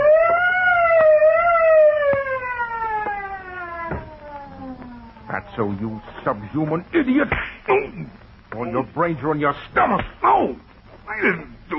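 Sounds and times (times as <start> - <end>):
truck alarm system going off: 0.0 - 5.8
speech: 5.6 - 11.7.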